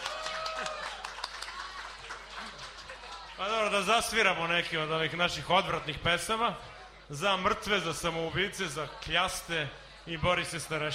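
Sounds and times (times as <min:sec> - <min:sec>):
audience clapping at a live folk music show: 0:00.0 - 0:03.9
speech: 0:03.4 - 0:10.9.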